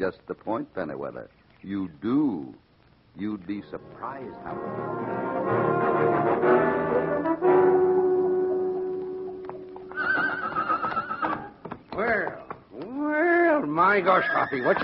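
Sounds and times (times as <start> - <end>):
speech: 0.0 - 7.5, 12.0 - 14.8
horse neighing: 7.8 - 14.8.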